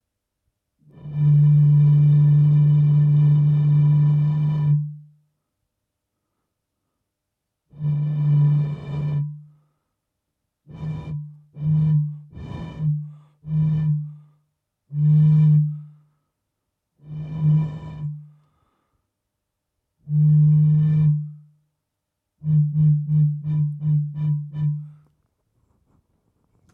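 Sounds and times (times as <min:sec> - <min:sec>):
blowing on a bottle: 0:00.8 - 0:05.2, 0:07.7 - 0:09.6, 0:10.6 - 0:16.0, 0:17.0 - 0:18.7, 0:20.0 - 0:21.6, 0:22.4 - 0:25.1.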